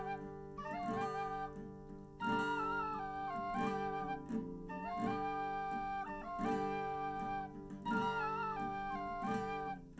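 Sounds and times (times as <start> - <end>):
live music mix without drums: 0.0 - 9.9.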